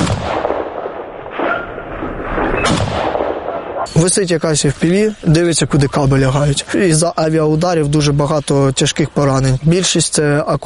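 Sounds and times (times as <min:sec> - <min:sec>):
gunfire at a hovering drone: 0:00.0 - 0:03.9
speech: 0:04.0 - 0:10.6.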